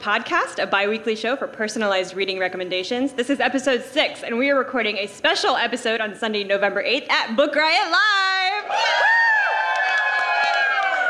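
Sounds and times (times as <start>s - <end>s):
speech: 0.0s - 9.2s
live audience clapping: 9.1s - 11.0s.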